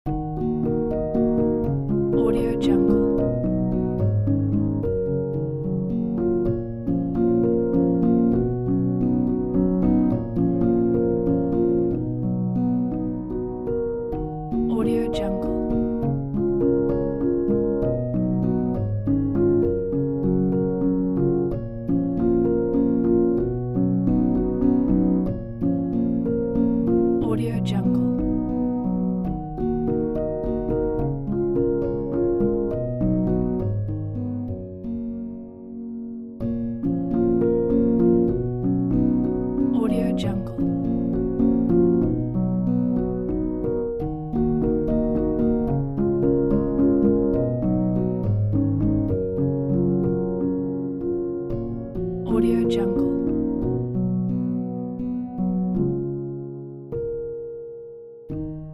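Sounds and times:
piano piece: 0:00.0 - 0:58.7.

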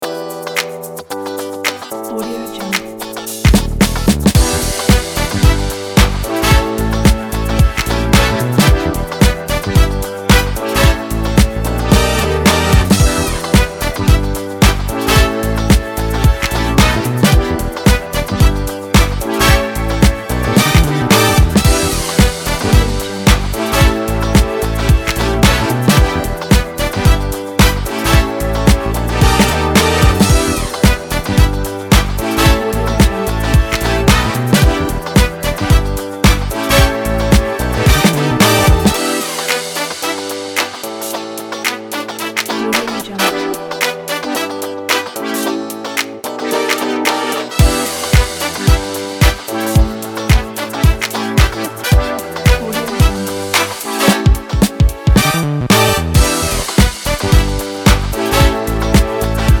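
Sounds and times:
funk groove: 0:00.0 - 0:59.5.

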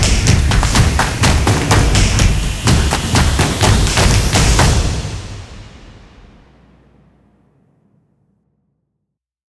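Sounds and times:
hand claps: 0:00.0 - 0:05.0
action drums: 0:00.0 - 0:07.8.

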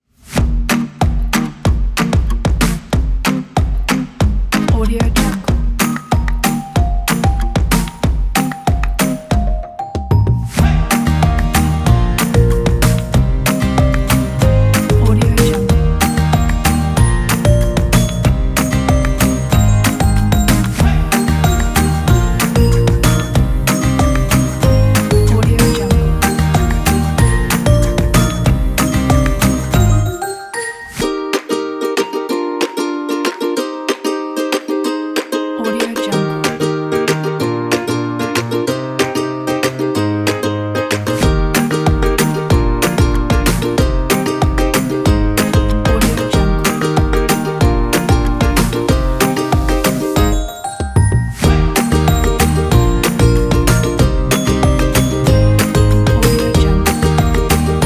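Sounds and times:
happy upbeat music: 0:00.2 - 0:57.8.

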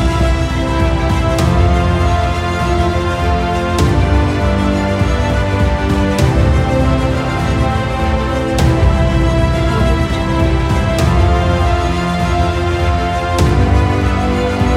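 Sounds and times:
emotional trailer music: 0:00.0 - 0:14.7.

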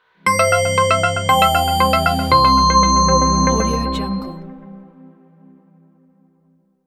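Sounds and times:
dream logo jingle: 0:00.3 - 0:05.1.

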